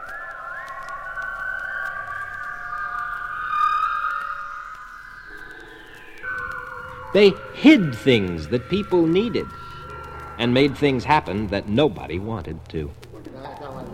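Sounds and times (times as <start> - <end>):
eerie wavering whistle: 0.0 - 13.9
faint clicks: 0.0 - 13.9
low hum: 0.0 - 13.9
speech: 7.1 - 9.6, 10.4 - 13.0.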